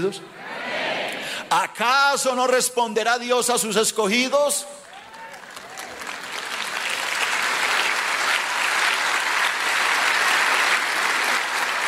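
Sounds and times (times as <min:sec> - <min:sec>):
speech: 0:00.0 - 0:00.5, 0:01.5 - 0:04.8
applause: 0:04.8 - 0:11.8.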